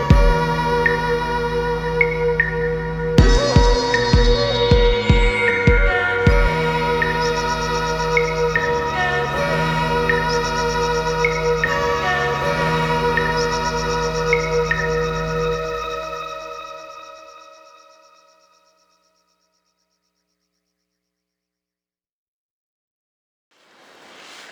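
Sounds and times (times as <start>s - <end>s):
instrumental music: 0.0s - 17.8s.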